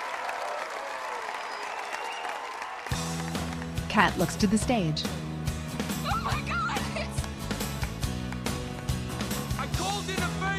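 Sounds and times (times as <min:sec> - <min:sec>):
concert crowd clapping and cheering: 0:00.0 - 0:10.5
loud band music: 0:02.9 - 0:10.5
speech: 0:04.0 - 0:05.2.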